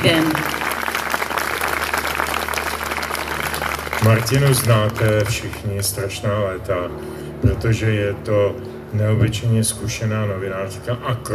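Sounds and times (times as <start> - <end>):
speech: 0.0 - 0.5, 4.0 - 11.3
audience applause: 0.0 - 6.1.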